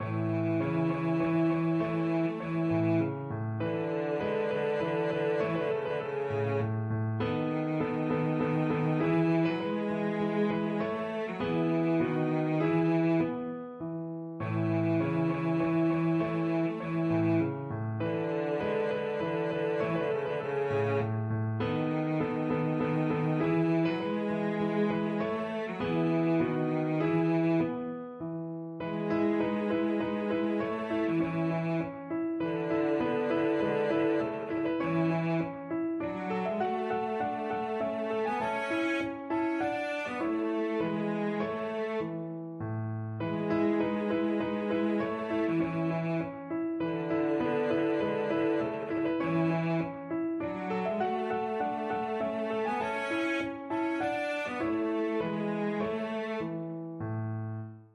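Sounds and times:
violoncello: 0.0s - 57.0s.

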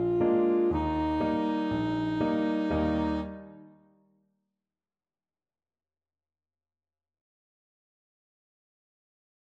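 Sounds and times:
saxophone: 0.0s - 3.8s.

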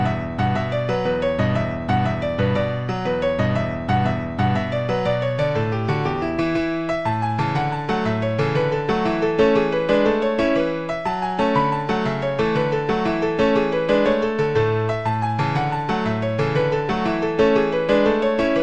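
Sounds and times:
jig medley on piano: 0.0s - 18.6s.

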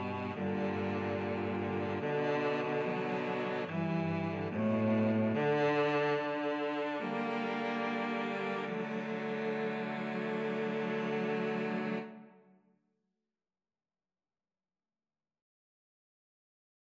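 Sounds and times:
cello trio playing: 0.0s - 12.3s.

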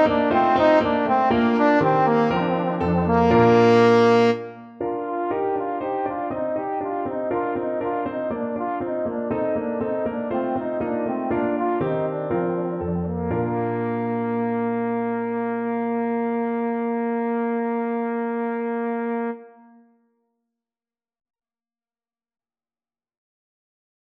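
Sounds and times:
trombone sonata: 0.0s - 19.8s.

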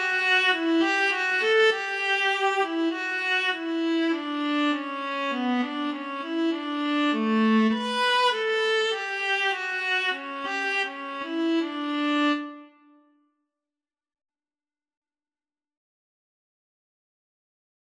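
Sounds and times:
viola and cello duet playing a melody: 0.0s - 12.6s.

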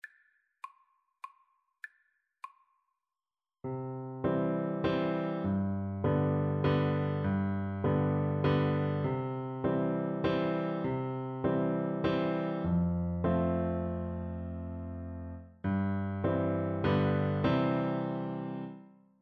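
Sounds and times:
piano duet: 3.7s - 19.0s.

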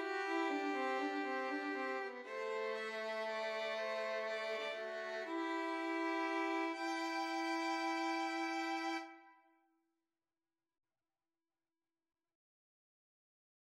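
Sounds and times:
violin trio: 0.0s - 9.2s.

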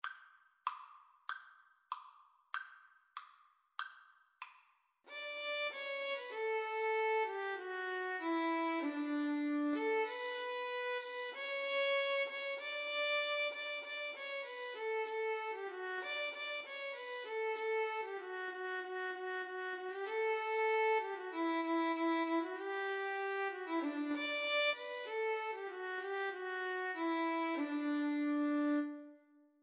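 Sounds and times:
violin and viola duet: 5.1s - 29.2s.

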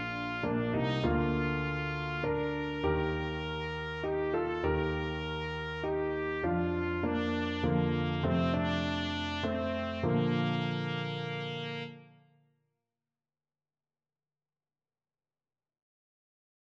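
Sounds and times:
trumpet playing a national anthem: 0.0s - 12.1s.

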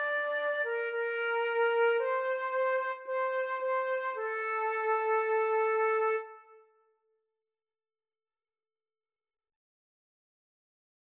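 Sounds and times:
hymn played by brass and two flutes: 0.0s - 6.6s.

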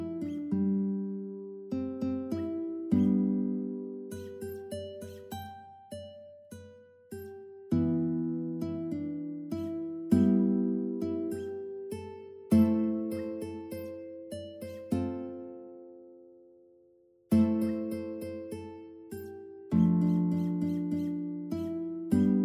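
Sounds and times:
Chinese love song with guitar: 0.0s - 22.4s.

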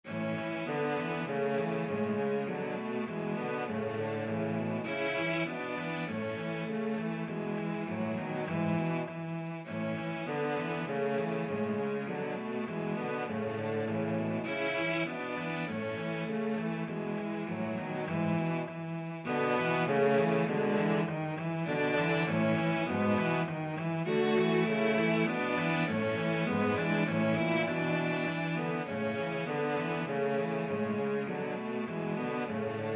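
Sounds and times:
cello trio melody: 0.0s - 32.9s.

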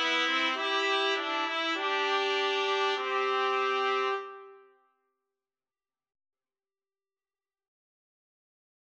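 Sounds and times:
trumpet trio playing a wedding march: 0.0s - 4.6s.

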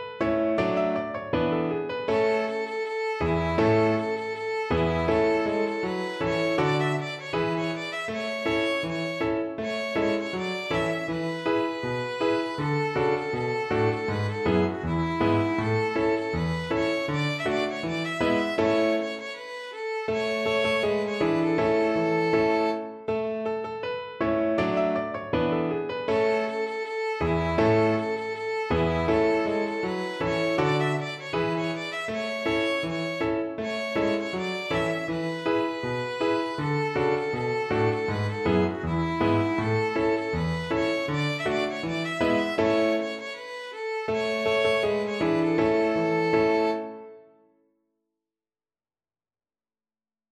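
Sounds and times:
violin: 0.1s - 23.1s, 24.2s - 47.2s.

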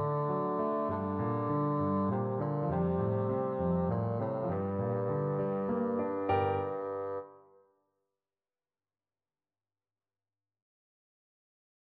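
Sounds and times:
Spanish violin: 0.0s - 7.2s
bassoon: 0.0s - 7.4s.

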